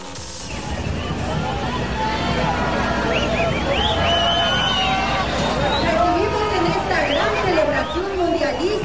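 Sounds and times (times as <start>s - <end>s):
crowd booing: 0.3s - 8.7s.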